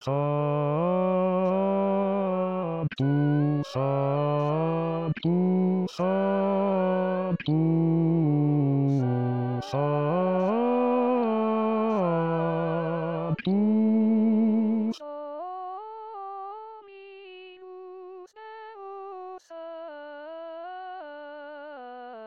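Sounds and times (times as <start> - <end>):
bass voices singing a liturgical chant: 0.0 - 15.0.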